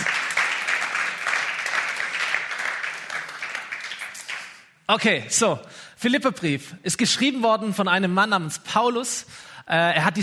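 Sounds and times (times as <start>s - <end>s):
audience applause: 0.0s - 4.7s
speech: 4.9s - 10.2s.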